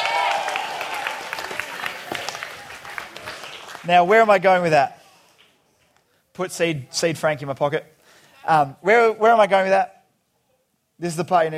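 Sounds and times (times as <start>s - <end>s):
audience clapping: 0.0s - 4.4s
speech: 3.8s - 5.0s, 6.4s - 10.0s, 11.0s - 11.5s.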